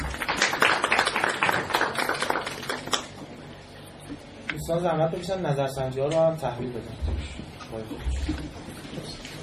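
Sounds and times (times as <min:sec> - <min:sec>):
audience applauding: 0:00.0 - 0:03.1
speech: 0:04.7 - 0:09.1.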